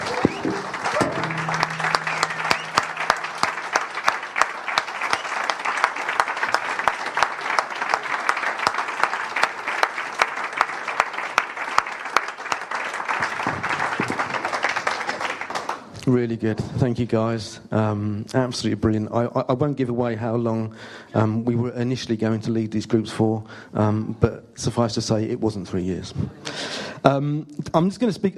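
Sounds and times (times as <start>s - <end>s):
audience applause: 0.0s - 15.9s
speech: 16.2s - 28.3s.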